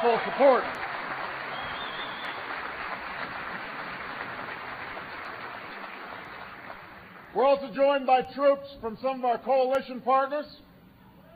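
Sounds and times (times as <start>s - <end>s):
speech: 0.0s - 0.9s, 7.4s - 10.7s
audience applause: 0.0s - 7.3s.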